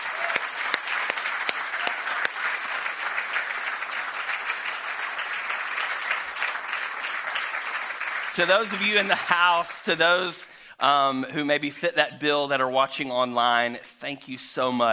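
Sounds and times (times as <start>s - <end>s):
round of applause: 0.0s - 9.6s
speech: 8.4s - 14.9s.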